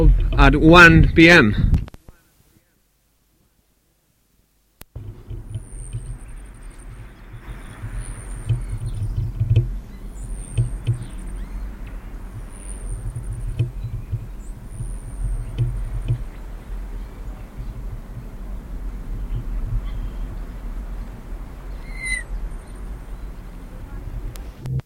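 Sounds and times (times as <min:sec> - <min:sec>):
speech: 0:00.0 - 0:01.7
low rumbling noise: 0:00.0 - 0:01.8, 0:04.8 - 0:24.8
Selasphorus hummingbird display buzzy trills: 0:04.9 - 0:24.8.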